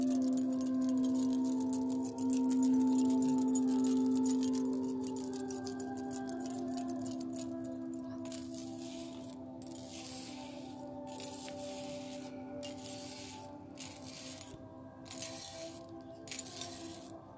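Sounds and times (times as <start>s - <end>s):
Tibetan singing bowls humming: 0.0s - 17.3s
bright metallic jingling: 0.0s - 17.3s.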